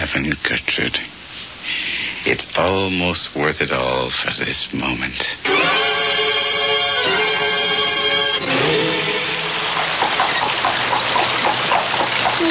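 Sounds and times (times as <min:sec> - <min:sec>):
speech: 0:00.1 - 0:05.8
rushing water from spring rains: 0:05.5 - 0:12.4.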